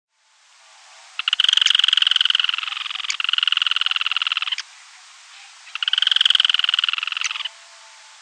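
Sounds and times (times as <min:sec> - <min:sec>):
Yellow-chinned spinetail song rattle: 0:01.2 - 0:04.7, 0:05.7 - 0:07.6.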